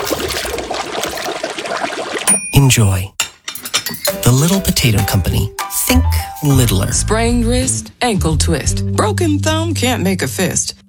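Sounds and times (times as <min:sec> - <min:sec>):
water pouring into a pot for boiling little potatoes: 0:00.0 - 0:02.3
speech: 0:02.6 - 0:03.2, 0:04.3 - 0:10.8.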